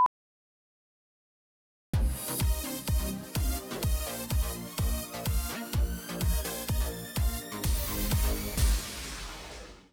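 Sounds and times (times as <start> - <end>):
dramatic music: 2.0 - 9.9.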